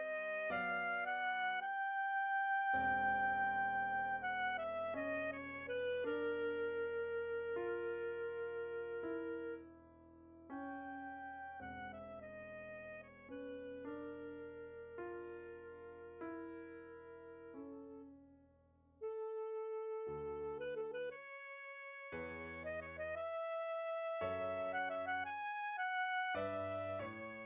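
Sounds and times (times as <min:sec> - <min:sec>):
piano etude: 0:00.0 - 0:18.4, 0:19.1 - 0:27.4.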